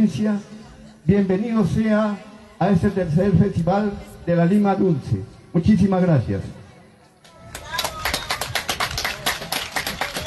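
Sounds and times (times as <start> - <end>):
speech: 0.0 - 6.6
audience applause: 7.6 - 10.2.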